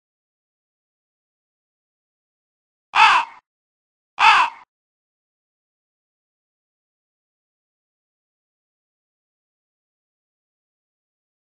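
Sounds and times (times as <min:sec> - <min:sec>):
crow: 0:03.0 - 0:03.5, 0:04.2 - 0:04.7.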